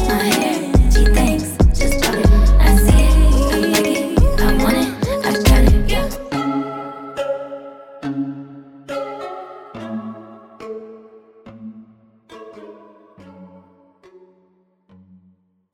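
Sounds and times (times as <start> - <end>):
ringtone marimba remix: 0.0 - 6.4.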